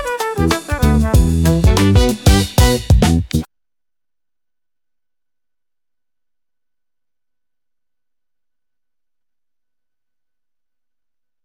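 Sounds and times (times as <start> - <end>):
1970s funk music: 0.0 - 3.5.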